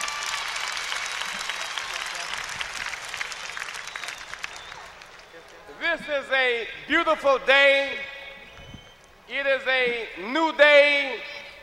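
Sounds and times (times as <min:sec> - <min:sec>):
audience applause: 0:00.0 - 0:05.8
speech: 0:06.0 - 0:08.0, 0:09.3 - 0:11.3.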